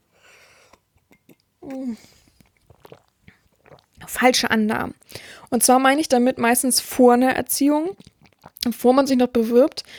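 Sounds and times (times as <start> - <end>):
soft mouth and lip noises: 0.6 - 4.1, 7.9 - 8.7
quick sip and swallow of a drink: 0.6 - 4.2, 7.9 - 8.7
speech: 1.7 - 2.2, 4.1 - 9.9.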